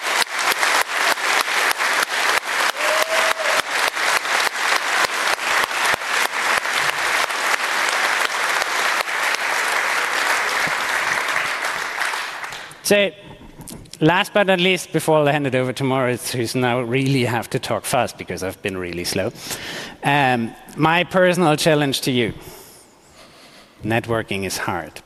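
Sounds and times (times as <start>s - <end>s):
round of applause from audience: 0.0s - 12.8s
speech: 12.9s - 22.6s, 23.8s - 25.0s.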